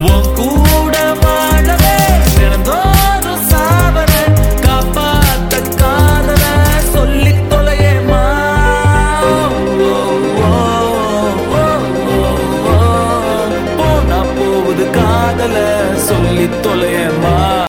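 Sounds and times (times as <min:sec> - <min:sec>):
Tamil tune: 0:00.0 - 0:17.6.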